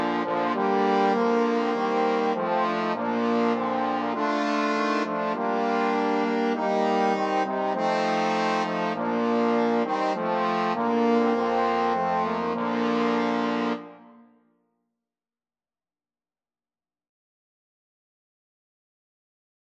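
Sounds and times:
trombone quartet: 0.0 - 14.0.

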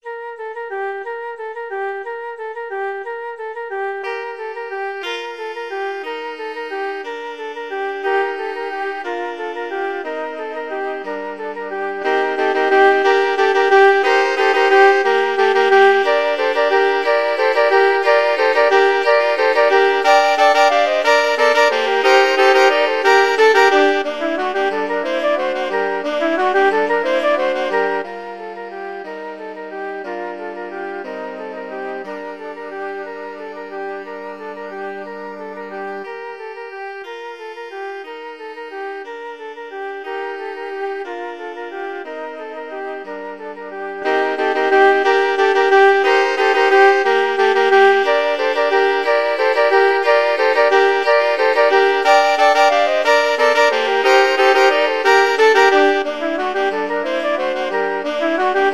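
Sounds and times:
flexible ensemble of four players: 3.6 - 58.7.

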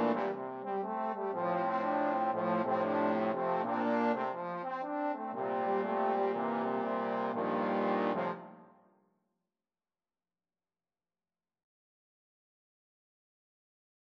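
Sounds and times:
trombone quartet playing: 0.0 - 8.6.

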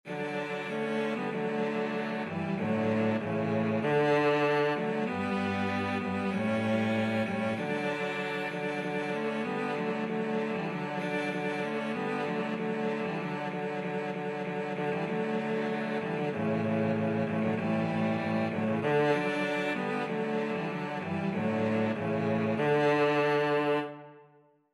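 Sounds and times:
cello trio playing: 0.0 - 24.1.

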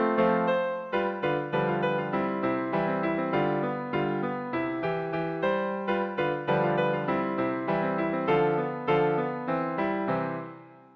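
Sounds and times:
pizzicato polka played on piano: 0.0 - 10.9.

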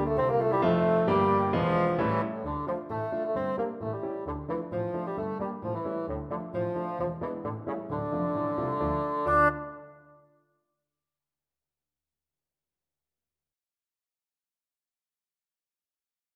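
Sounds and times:
bassoon: 0.0 - 10.3.

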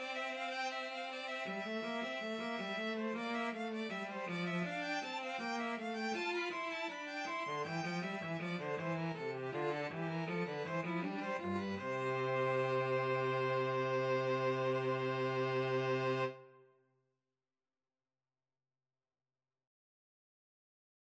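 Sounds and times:
violin and cello duet: 0.0 - 16.5.

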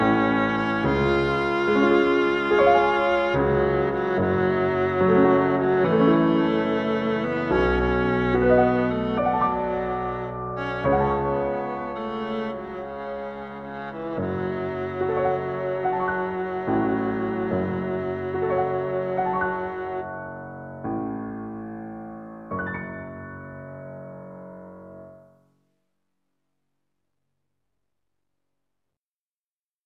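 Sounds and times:
violin and viola duet: 0.0 - 20.1.

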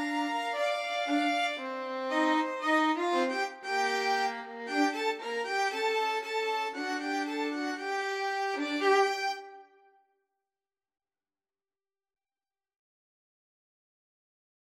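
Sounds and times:
violin trio: 0.0 - 9.7.

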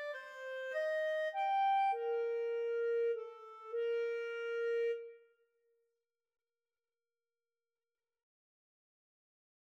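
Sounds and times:
clarinet in a duet: 0.0 - 5.4.

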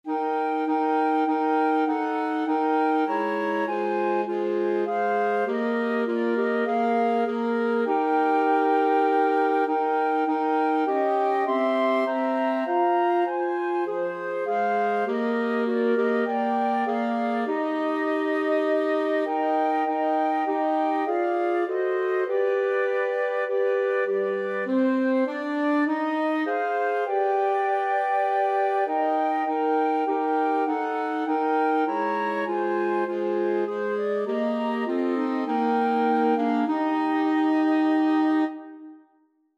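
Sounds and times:
flexible mixed ensemble of four players: 0.1 - 38.8.

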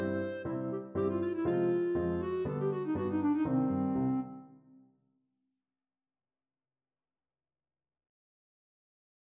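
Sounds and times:
clarinet playing a freilechs: 0.0 - 4.8.

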